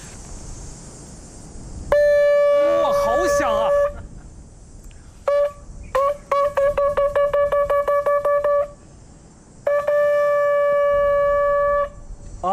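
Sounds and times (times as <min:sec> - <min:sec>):
horn blown from the corner of the mouth: 0:01.9 - 0:04.0, 0:05.2 - 0:08.8, 0:09.6 - 0:12.0.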